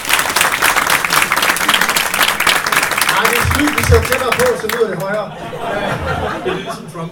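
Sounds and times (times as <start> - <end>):
crowd applauding: 0.0 - 5.2
speech: 3.9 - 7.1
laughter: 5.2 - 7.1.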